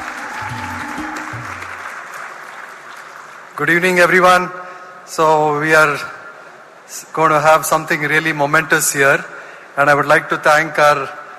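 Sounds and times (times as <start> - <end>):
audience applause: 0.0 - 3.6
speech: 3.6 - 6.2, 6.9 - 11.2.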